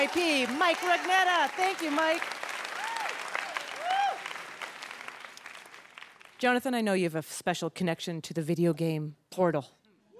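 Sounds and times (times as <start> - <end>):
speech: 0.0 - 2.4, 6.4 - 9.8
audience applause: 0.0 - 6.4.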